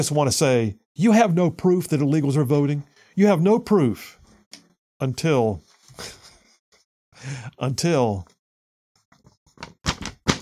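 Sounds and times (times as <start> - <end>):
speech: 0.0 - 4.2, 5.0 - 6.2, 7.2 - 8.4
big hefty paper report dropped onto a desk: 9.6 - 10.4.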